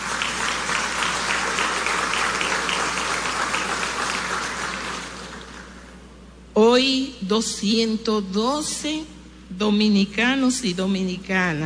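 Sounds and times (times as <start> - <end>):
audience applause: 0.0 - 5.9
speech: 6.7 - 11.6.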